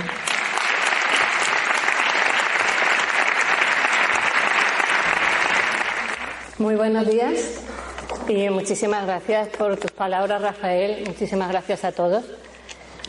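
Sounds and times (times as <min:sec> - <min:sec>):
audience applause: 0:00.0 - 0:06.6
speech: 0:06.6 - 0:07.7, 0:08.3 - 0:12.4.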